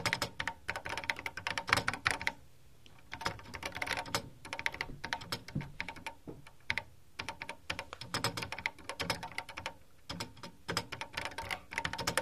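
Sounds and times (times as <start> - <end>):
sparse computer keyboard typing: 0.0 - 2.4, 3.0 - 12.2.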